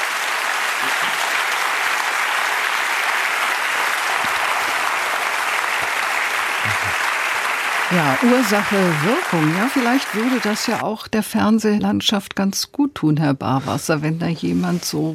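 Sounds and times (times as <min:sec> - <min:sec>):
audience applause: 0:00.0 - 0:10.8
speech: 0:07.9 - 0:15.1.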